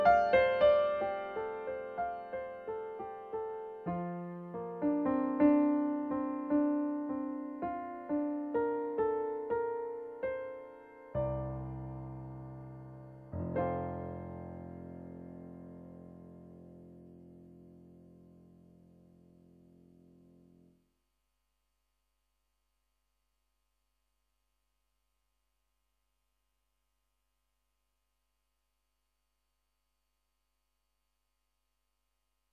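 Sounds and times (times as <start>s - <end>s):
piano: 0.0s - 20.8s.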